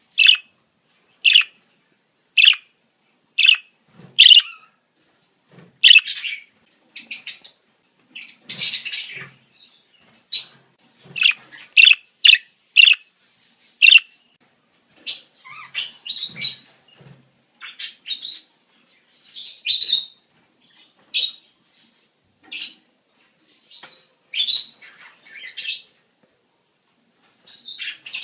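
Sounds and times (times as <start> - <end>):
budgerigar chatter: 0.2 - 0.4, 1.3 - 1.5, 2.4 - 2.6, 3.4 - 3.6, 4.2 - 4.4, 5.8 - 6.0, 11.2 - 13.0, 13.8 - 14.0.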